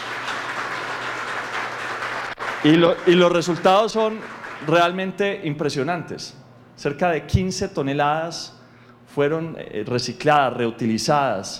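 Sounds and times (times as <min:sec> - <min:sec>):
applause for the staff of a Colombian mayor's office: 0:00.0 - 0:05.1
speech: 0:02.6 - 0:11.5.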